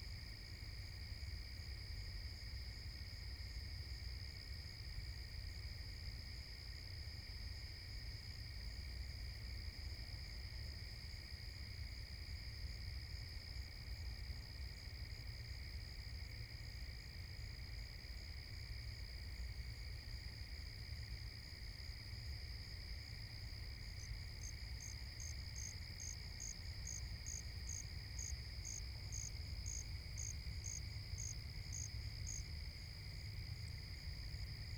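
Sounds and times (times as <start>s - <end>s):
forest at night: 0.0s - 34.7s.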